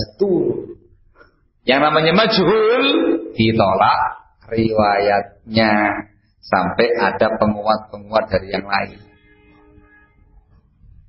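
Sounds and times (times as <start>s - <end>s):
speech: 0.2s - 0.6s, 1.6s - 9.1s
train horn: 9.0s - 10.3s.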